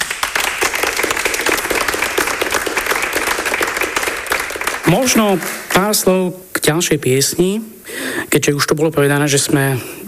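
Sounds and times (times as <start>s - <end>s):
audience applause for a children's choir: 0.0s - 6.1s
speech: 4.9s - 10.0s.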